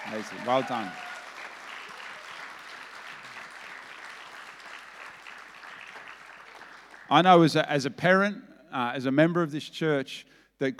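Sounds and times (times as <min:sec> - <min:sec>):
church audience applause: 0:00.0 - 0:07.1
speech: 0:00.1 - 0:01.1, 0:07.1 - 0:10.7.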